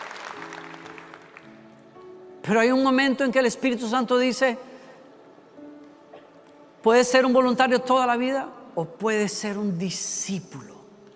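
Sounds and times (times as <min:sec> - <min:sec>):
audience applause: 0:00.0 - 0:01.6
speech: 0:02.5 - 0:04.7, 0:06.8 - 0:10.7.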